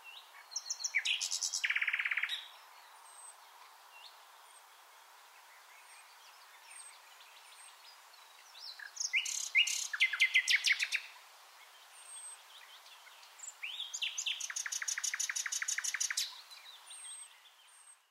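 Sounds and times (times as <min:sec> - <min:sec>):
common nightingale song: 0:00.0 - 0:18.0
faint background hiss: 0:00.0 - 0:18.0.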